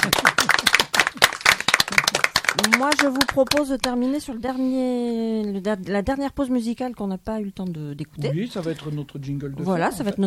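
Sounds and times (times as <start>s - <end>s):
speech: 0.0s - 0.3s, 2.6s - 10.2s
clapping applause: 0.0s - 4.0s.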